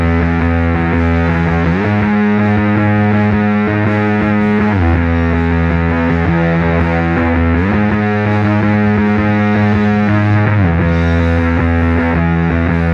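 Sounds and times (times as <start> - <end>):
bass: 0.0 - 12.9.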